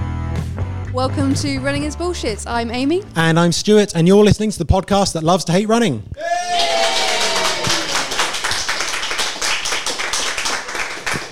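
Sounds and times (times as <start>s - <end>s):
speech: 1.0s - 7.0s
live audience clapping: 6.2s - 11.3s.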